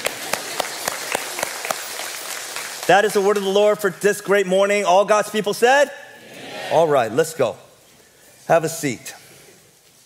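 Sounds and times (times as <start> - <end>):
scattered applause: 0.0 - 3.5
audience clapping in unison: 0.0 - 3.8
speech: 2.9 - 6.0, 6.7 - 7.6, 8.5 - 9.2.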